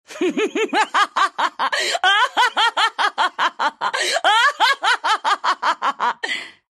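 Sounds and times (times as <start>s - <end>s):
person laughing: 0.1s - 6.4s.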